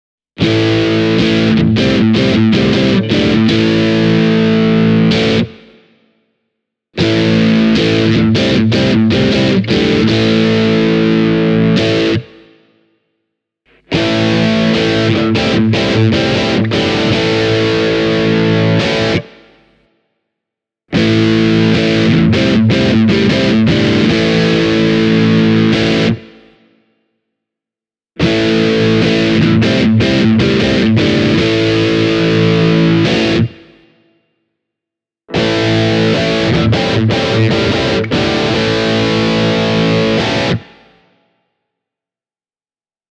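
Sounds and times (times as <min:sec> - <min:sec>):
dirty electric guitar with Duncan pickups through Ogre Magnox M1: 0:00.4 - 0:05.8, 0:07.0 - 0:12.5, 0:13.7 - 0:19.6, 0:20.9 - 0:26.5, 0:28.2 - 0:33.8, 0:35.3 - 0:41.0.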